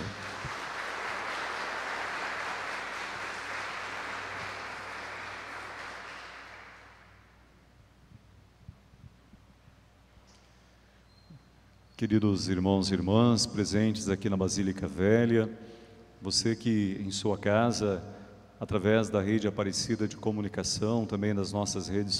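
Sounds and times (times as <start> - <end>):
audience applauding: 0.0 - 7.2
speech: 12.0 - 22.1.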